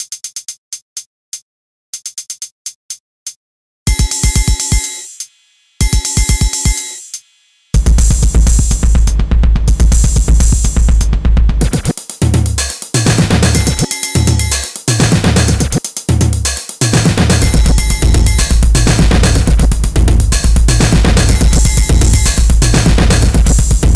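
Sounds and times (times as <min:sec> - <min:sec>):
tense groove music: 0:03.9 - 0:05.1, 0:07.8 - 0:23.9.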